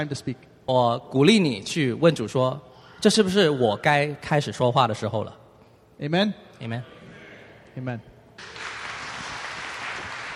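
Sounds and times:
speech: 0.0 - 5.4, 6.0 - 7.0, 7.8 - 8.6
audience applause: 8.4 - 10.3.

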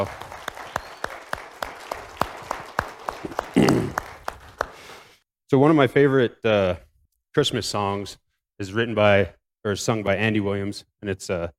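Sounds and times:
speech: 0.0 - 0.2, 5.5 - 6.8, 7.4 - 11.5
audience applause: 0.0 - 5.1.

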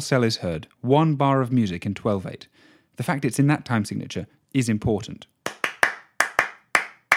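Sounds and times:
speech: 0.0 - 5.3
hand clapping rhythm pattern: 5.4 - 7.1.

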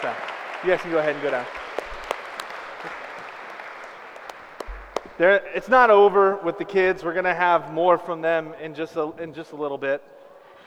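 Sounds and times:
speech: 0.0 - 1.6, 5.2 - 10.2
audience applause for children: 0.0 - 5.2.

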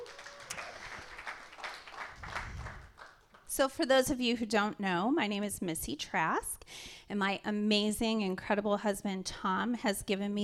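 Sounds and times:
audience clapping: 0.0 - 3.5
speech: 3.6 - 10.4.

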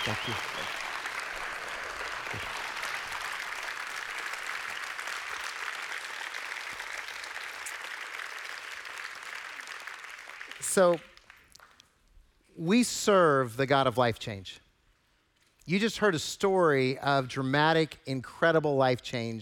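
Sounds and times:
audience applauding: 0.0 - 11.8
speech: 0.1 - 0.7, 2.3 - 2.6, 10.8 - 11.1, 12.6 - 14.6, 15.7 - 19.4.

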